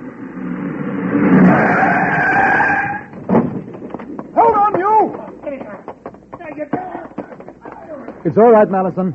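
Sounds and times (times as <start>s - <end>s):
car engine: 0.0s - 4.7s
tyres screeching in a long skid: 0.8s - 3.1s
car halting with a thud: 3.1s - 3.8s
speech: 8.4s - 9.1s.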